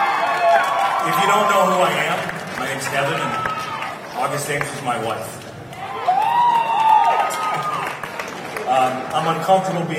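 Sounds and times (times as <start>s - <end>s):
audience cheering: 0.0s - 4.1s, 5.7s - 8.7s
audience applause: 0.0s - 5.1s, 5.7s - 9.7s
speech: 4.2s - 5.4s, 8.7s - 9.9s.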